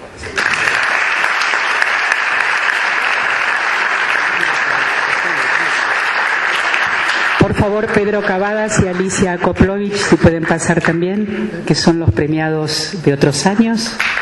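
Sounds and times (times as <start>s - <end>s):
audience applause: 0.2s - 9.3s
speech: 7.6s - 14.2s.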